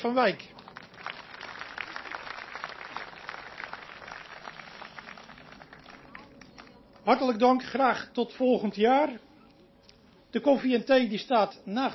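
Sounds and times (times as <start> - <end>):
speech: 0.0 - 0.6, 7.1 - 9.3, 10.3 - 11.9
audience applause: 0.5 - 7.1.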